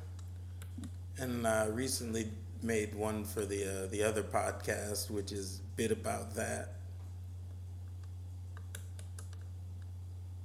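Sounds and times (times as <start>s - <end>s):
steady low electrical hum: 0.0s - 10.4s
speech: 1.2s - 6.8s
computer mouse clicking: 8.0s - 9.5s.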